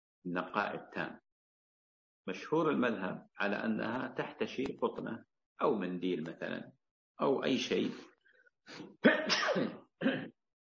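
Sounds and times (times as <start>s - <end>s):
speech: 0.2s - 1.2s, 2.3s - 8.1s, 8.7s - 10.3s
person sneezing: 8.7s - 10.3s.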